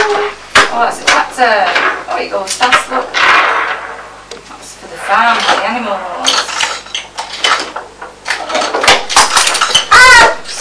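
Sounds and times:
speech: 0.8s - 3.6s, 4.9s - 6.5s
object dropped with clatter: 2.7s - 4.1s, 5.0s - 10.0s.

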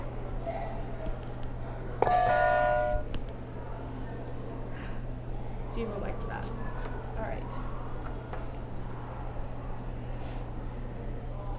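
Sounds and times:
low hum: 0.0s - 11.5s
buzzer pressed, click and bright electronic tone: 2.0s - 3.1s.

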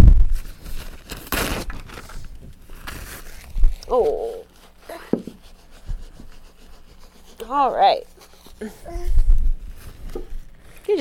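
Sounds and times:
tissues pulled from a soft plastic packet: 0.5s - 4.9s
speech: 3.9s - 4.4s, 7.5s - 9.2s.

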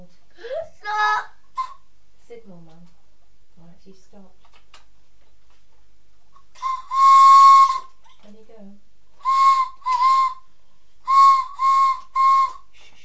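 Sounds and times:
whistle blown: 6.6s - 7.9s, 9.2s - 10.4s, 11.1s - 12.7s.

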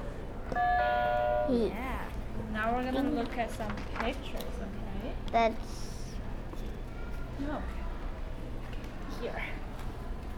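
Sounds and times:
low noise: 0.0s - 10.3s
buzzer being pressed: 0.6s - 1.5s
speech: 1.5s - 2.0s, 2.6s - 5.9s, 7.4s - 7.8s, 9.2s - 9.6s.

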